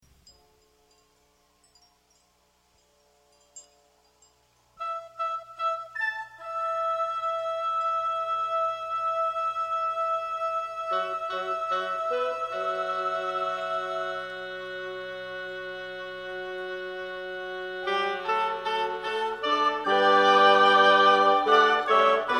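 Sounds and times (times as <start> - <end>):
fanfare: 4.8 - 22.3.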